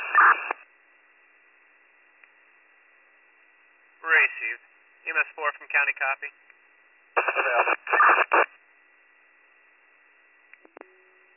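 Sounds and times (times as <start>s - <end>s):
radio static: 0.0s - 0.6s, 4.0s - 6.3s, 7.2s - 8.6s
speech: 4.4s - 6.5s, 7.2s - 8.5s.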